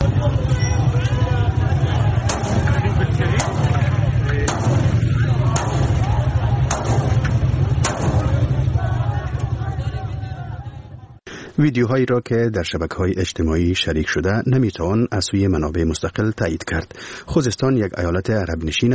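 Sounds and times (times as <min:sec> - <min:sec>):
crowd of protesters shouting: 0:00.0 - 0:11.2
gunfire at a crowd of protesters: 0:02.2 - 0:08.8
speech: 0:11.6 - 0:18.9.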